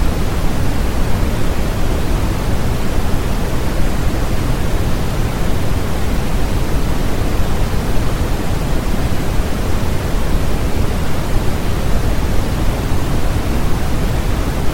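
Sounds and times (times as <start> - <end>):
white noise: 0.0 - 14.7.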